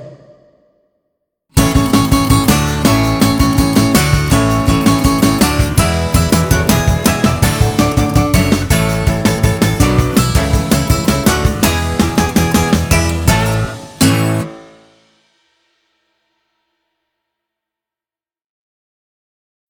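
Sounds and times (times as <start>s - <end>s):
instrumental dance music: 1.6s - 14.5s.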